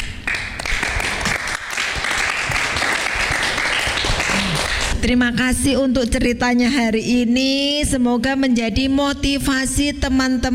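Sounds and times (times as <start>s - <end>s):
audience applause: 0.2s - 5.0s
speech: 5.0s - 10.5s.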